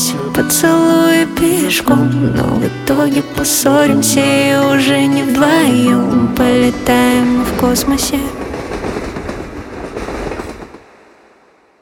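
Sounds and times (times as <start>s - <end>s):
acoustic music: 0.0s - 9.1s.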